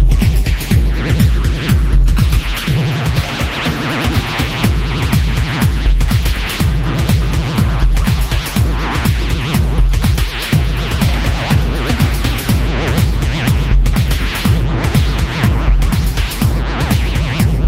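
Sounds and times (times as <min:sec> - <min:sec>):
rhythm and noise digital hardcore music: 0:00.0 - 0:17.6.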